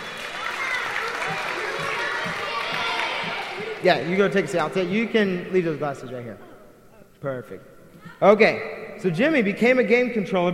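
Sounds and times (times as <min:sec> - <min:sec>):
audience applause: 0:00.0 - 0:05.1
low crowd murmurs: 0:00.0 - 0:08.5
speech: 0:03.8 - 0:06.5, 0:07.2 - 0:10.5.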